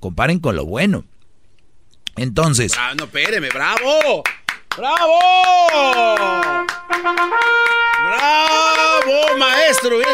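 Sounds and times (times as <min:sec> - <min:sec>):
speech: 0:00.0 - 0:01.1, 0:02.2 - 0:10.1
rhythmic clapping from people in hallways: 0:02.7 - 0:10.1.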